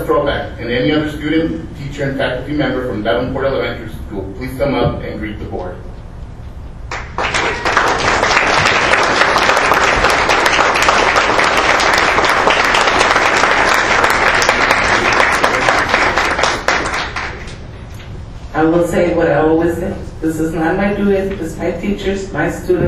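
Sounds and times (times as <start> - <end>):
speech: 0.1 - 5.9, 18.6 - 22.8
audience applause: 6.9 - 17.6.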